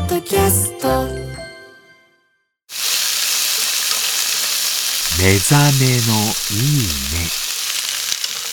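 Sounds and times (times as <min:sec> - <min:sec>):
speech: 0:00.2 - 0:01.3, 0:05.3 - 0:07.5
yakisoba with crisp cabbage sizzling: 0:02.7 - 0:08.5.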